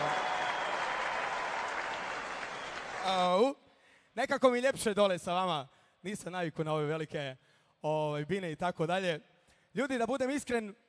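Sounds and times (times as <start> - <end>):
audience applause for an orchestra at a kafana evening: 0.0 - 3.1
speech: 3.1 - 3.6, 4.2 - 10.8.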